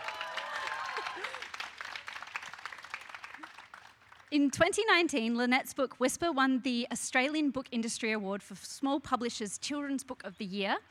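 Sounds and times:
audience cheering and clapping: 0.0s - 4.0s
speech: 4.3s - 10.8s.

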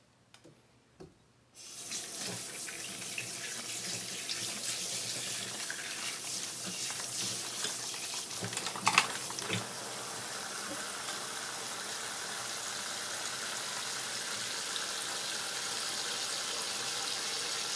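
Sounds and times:
tap water running: 1.6s - 17.7s
kitchen knocks and clacks while making katsuo tataki ramen: 8.4s - 9.7s.

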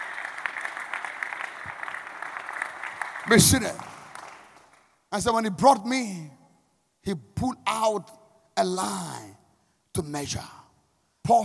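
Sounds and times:
clapping: 0.0s - 5.0s
speech: 3.3s - 3.9s, 5.1s - 6.4s, 7.0s - 9.4s, 10.0s - 10.6s, 11.3s - 11.4s.

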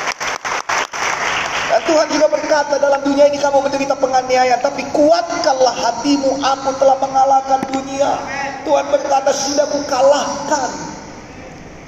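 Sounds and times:
audience applause: 0.0s - 1.8s
speech: 1.9s - 10.9s.

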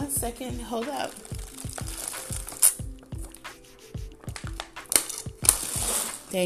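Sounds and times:
speech: 0.2s - 1.4s
plastic bottle crinkling: 1.0s - 3.4s, 4.3s - 6.3s.

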